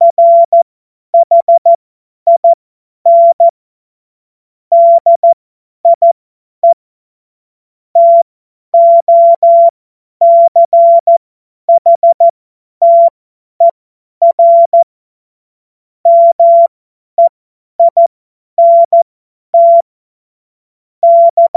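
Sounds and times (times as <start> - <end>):
morse code beeps: 0.0 - 0.6, 1.2 - 1.7, 2.3 - 3.5, 4.7 - 6.8, 8.0 - 14.9, 16.1 - 19.0, 19.6 - 19.9, 21.0 - 21.5.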